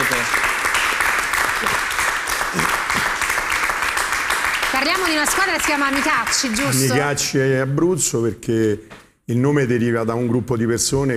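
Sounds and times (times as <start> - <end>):
audience applause: 0.0 - 7.0
speech: 4.8 - 11.1.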